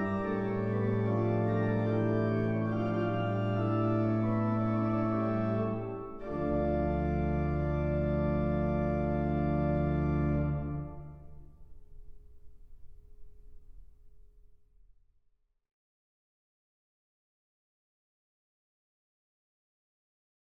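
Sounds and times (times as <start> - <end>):
prelude and fugue: 0.0 - 11.5.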